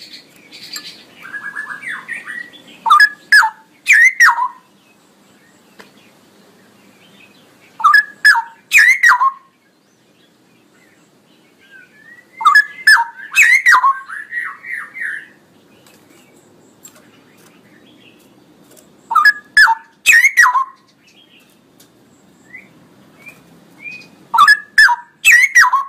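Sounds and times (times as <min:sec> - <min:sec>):
Straw-headed bulbul song: 0:00.0 - 0:04.8, 0:07.0 - 0:09.6, 0:11.1 - 0:15.4, 0:19.1 - 0:21.5, 0:22.4 - 0:25.8.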